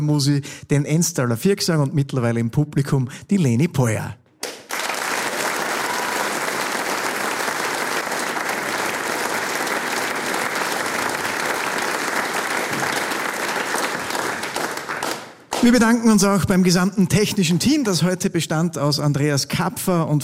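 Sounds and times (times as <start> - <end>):
speech: 0.0 - 4.2, 15.6 - 20.2
large audience applauding: 4.4 - 16.0.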